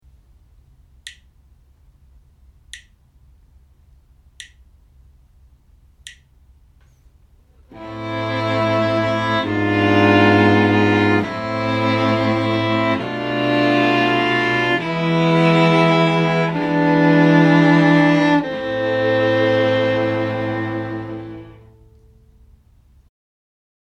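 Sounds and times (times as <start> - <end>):
string quartet playing: 7.7 - 21.9.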